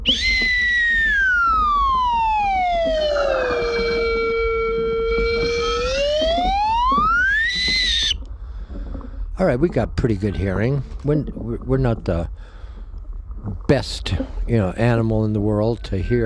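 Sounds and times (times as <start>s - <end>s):
slide whistle glide: 0.0s - 8.2s
speech: 9.4s - 12.5s, 13.4s - 16.2s.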